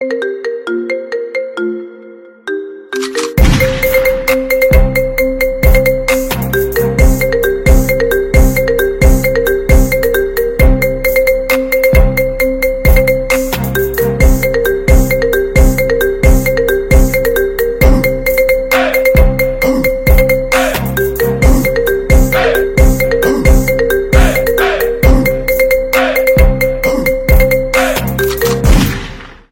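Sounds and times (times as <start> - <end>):
phone marimba ringtone remix: 0.0 - 28.8.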